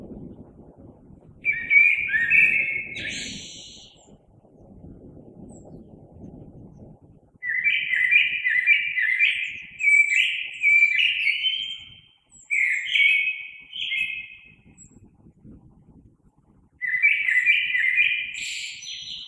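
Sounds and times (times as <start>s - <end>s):
steady low rumble of background noise: 0.0s - 7.4s
common blackbird singing: 1.4s - 4.2s, 7.4s - 14.9s, 16.8s - 19.2s.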